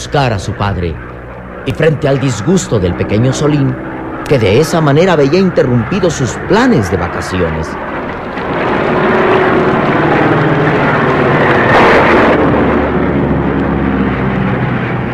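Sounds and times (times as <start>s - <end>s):
speech: 0.0s - 8.5s
small airplane flying through a storm: 0.0s - 15.1s.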